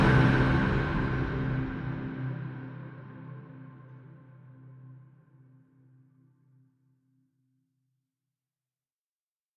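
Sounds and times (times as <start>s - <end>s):
open timeless flat opening intro music for a presentation: 0.0s - 4.3s.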